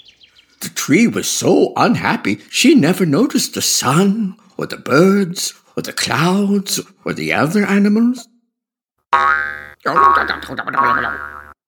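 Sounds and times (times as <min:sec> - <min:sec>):
speech: 0:00.8 - 0:08.3, 0:09.1 - 0:11.3
cartoon boing effect of rabbit jumping: 0:09.1 - 0:11.6.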